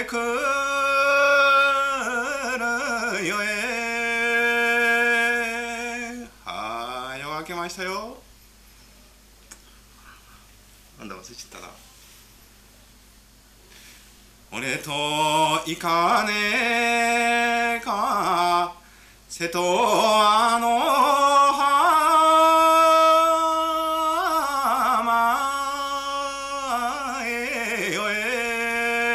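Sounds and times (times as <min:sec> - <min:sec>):
Japanese minyo folk song singing in Minamiboso: 0:00.0 - 0:08.2, 0:14.5 - 0:29.1.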